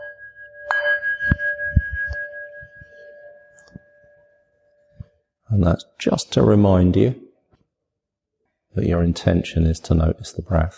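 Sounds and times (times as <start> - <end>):
meditation bell: 0.0 - 5.4
speech: 5.5 - 7.2, 8.8 - 10.7.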